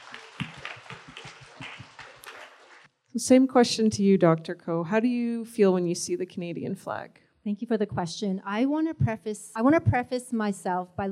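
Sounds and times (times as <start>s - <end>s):
soft round of applause: 0.0s - 2.9s
speech: 3.2s - 11.1s.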